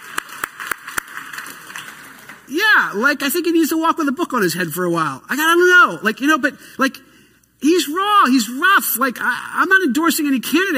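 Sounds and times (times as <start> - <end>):
handclaps: 0.0 - 2.5
speech: 2.5 - 10.7.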